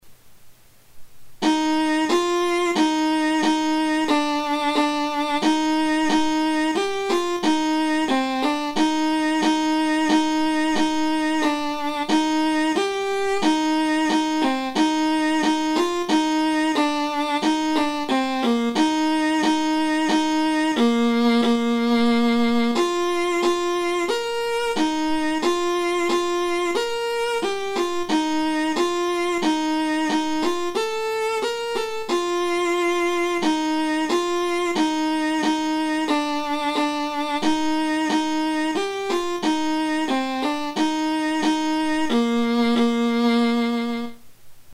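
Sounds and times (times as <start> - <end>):
MIDI alto: 1.4 - 44.3.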